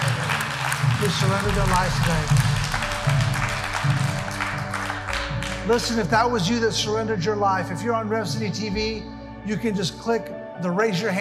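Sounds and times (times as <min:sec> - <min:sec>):
audience clapping: 0:00.0 - 0:06.6
sustained low musical tones: 0:00.0 - 0:11.1
speech: 0:01.0 - 0:02.5, 0:05.6 - 0:11.1.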